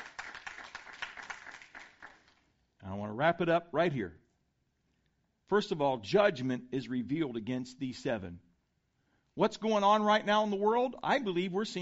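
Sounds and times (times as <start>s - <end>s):
church congregation clapping in praise: 0.0s - 2.6s
speech: 3.0s - 4.2s, 5.5s - 8.5s, 9.4s - 11.8s.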